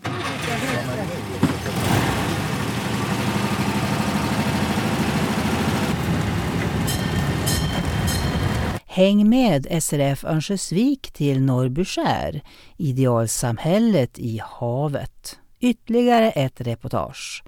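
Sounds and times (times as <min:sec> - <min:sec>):
tourist train ride starting on Norrbyskär: 0:00.0 - 0:08.8
speech: 0:09.0 - 0:17.4.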